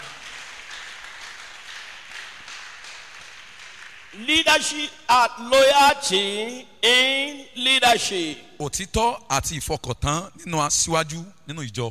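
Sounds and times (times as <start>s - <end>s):
applause from audience: 0.0s - 4.2s
speech: 4.1s - 11.8s.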